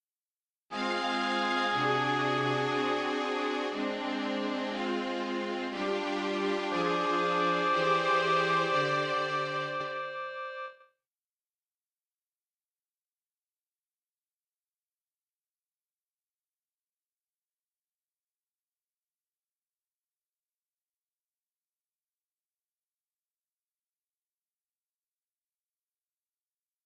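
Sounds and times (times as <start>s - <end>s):
clarinet: 0.7s - 10.9s
oboe: 0.8s - 4.9s, 5.7s - 10.8s.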